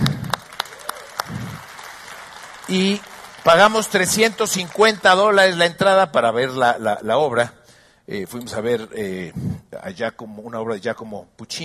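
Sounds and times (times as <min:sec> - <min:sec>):
audience applause: 0:00.0 - 0:05.6
speech: 0:02.7 - 0:11.6.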